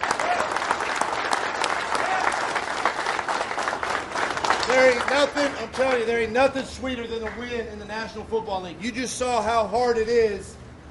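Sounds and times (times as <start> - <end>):
group of men applauding: 0.0 - 7.6
speech: 4.8 - 10.6.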